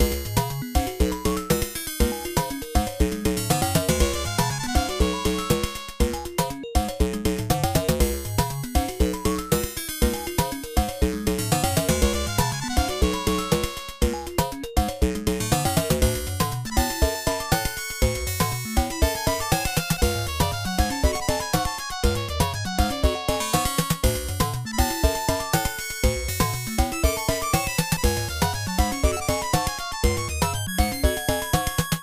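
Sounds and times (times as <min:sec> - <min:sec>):
background music: 0:00.0 - 0:32.0.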